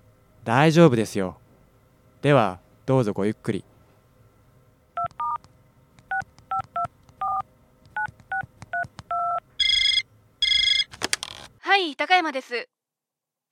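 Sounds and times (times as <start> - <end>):
speech: 0.5 - 1.4, 2.2 - 3.7, 11.8 - 12.8
touch-tone keypad dialing beeps: 5.0 - 5.4, 6.1 - 7.4, 8.0 - 10.9
telephone line ringing tones: 9.1 - 10.9.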